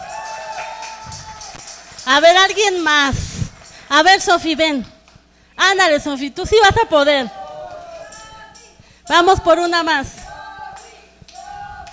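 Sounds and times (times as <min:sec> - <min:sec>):
audience applause: 0:00.0 - 0:02.8
speech: 0:02.1 - 0:03.3, 0:03.9 - 0:04.9, 0:05.6 - 0:07.4, 0:09.1 - 0:10.2.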